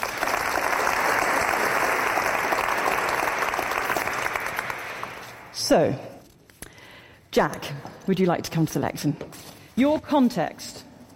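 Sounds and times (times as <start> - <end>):
audience applause welcoming panelists at a panel discussion: 0.0 - 5.5
speech: 5.7 - 6.1, 7.4 - 10.8.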